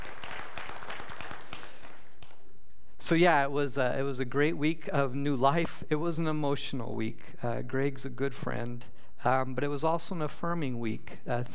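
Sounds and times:
applause: 0.0 - 2.4
speech: 3.1 - 11.5.

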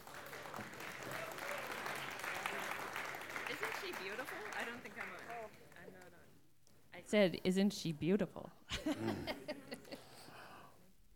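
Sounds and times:
faint audience applause welcoming a missionary woman on stage: 0.0 - 5.8
speech: 3.9 - 6.2, 7.0 - 9.5
laughter: 8.7 - 10.3.

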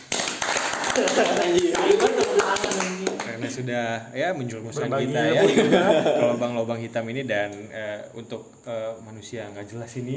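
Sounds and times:
hand clapping from a few people: 0.0 - 3.5
laughter: 0.8 - 3.5, 5.2 - 6.4
speech: 1.0 - 10.1.

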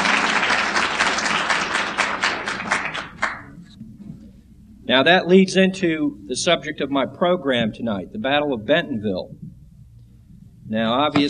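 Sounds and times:
audience round of applause: 0.0 - 3.7
speech: 4.9 - 9.4, 10.7 - 11.2.

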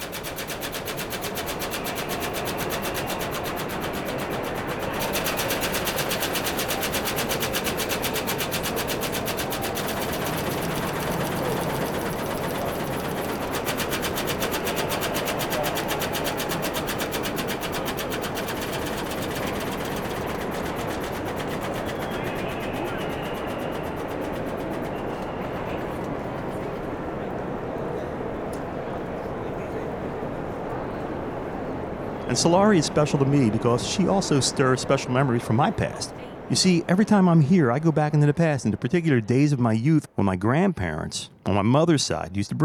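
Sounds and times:
crowd murmur in a busy train station concourse: 0.0 - 40.3
speech: 32.4 - 42.6.

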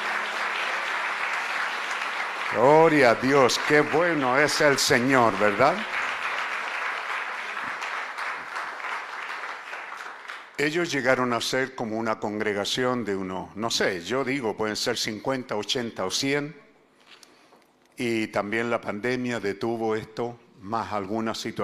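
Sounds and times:
audience applause: 0.0 - 10.6
speech: 2.5 - 6.0, 10.6 - 16.6, 18.0 - 21.6.

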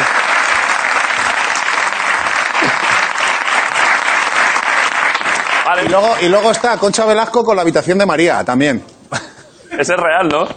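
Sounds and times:
audience applause: 0.0 - 6.8
speech: 5.8 - 9.2, 9.8 - 10.5.

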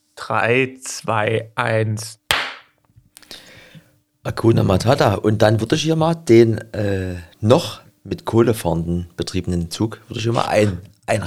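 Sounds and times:
speech: 0.3 - 2.2, 4.2 - 11.2
single hand clap for sync: 2.3 - 3.4.

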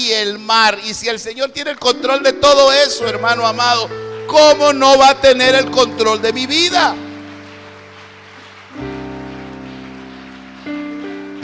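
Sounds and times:
speech: 0.1 - 7.0
audience clapping hands: 1.6 - 11.4
sustained keyboard chords: 1.8 - 11.4.

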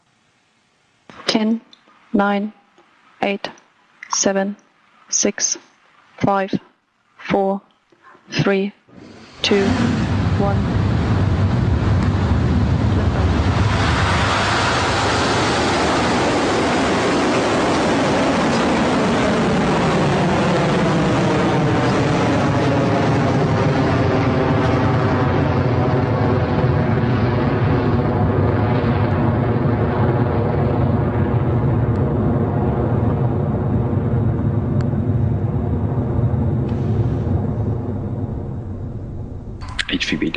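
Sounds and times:
speech: 1.4 - 2.6, 3.2 - 7.7, 8.3 - 8.8, 9.4 - 10.8
Electron rocket liftoff roar: 8.9 - 40.3.

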